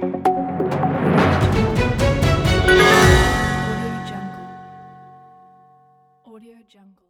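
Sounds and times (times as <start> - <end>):
breaking news logo jingle: 0.1 - 5.4.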